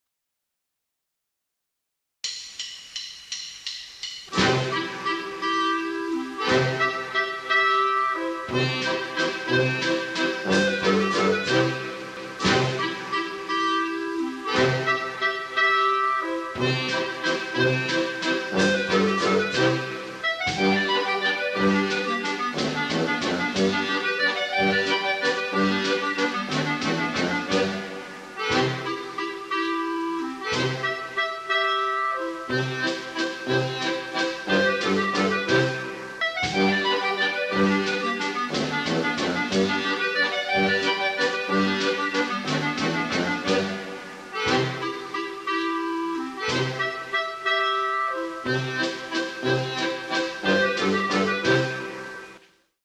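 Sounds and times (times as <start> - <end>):
Tyrolean orchestra playing German dance: 4.3 - 52.4.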